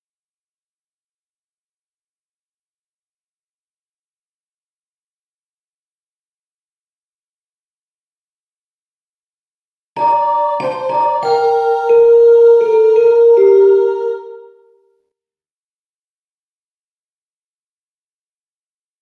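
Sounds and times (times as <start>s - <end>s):
piano playing a carol: 10.0s - 14.6s.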